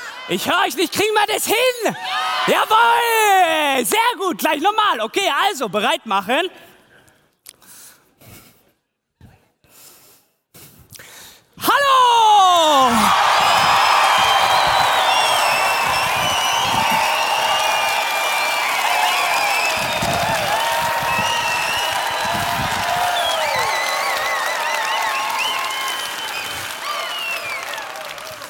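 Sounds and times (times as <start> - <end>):
speech: 0.3 - 6.7
audience applause: 12.5 - 28.4.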